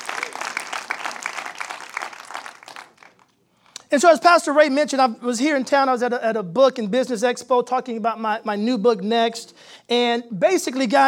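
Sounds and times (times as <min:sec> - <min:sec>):
audience applause with hand clapping: 0:00.0 - 0:03.3
speech: 0:03.9 - 0:11.0.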